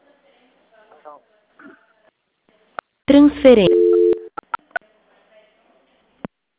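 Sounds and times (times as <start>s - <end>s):
person speaking: 3.1s - 4.0s
flat steady telephone tone: 3.5s - 4.4s.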